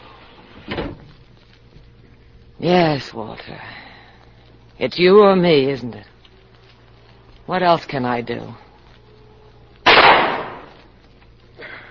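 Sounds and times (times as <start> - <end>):
window being closed: 0.5 - 1.1
speech: 2.6 - 3.9, 4.8 - 6.1, 7.5 - 8.6.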